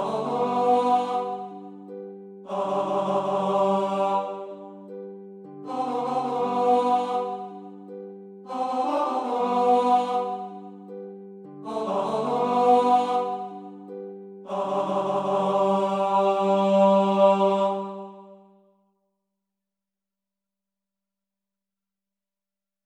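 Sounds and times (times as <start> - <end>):
male chorus: 0.0 - 1.6, 2.5 - 4.8, 5.7 - 7.6, 8.5 - 10.6, 11.7 - 13.6, 14.5 - 18.4.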